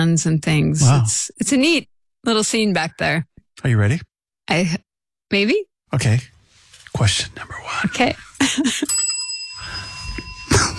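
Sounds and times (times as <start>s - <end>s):
speech: 0.0s - 6.3s, 7.0s - 9.0s
bell ringing: 8.6s - 10.7s.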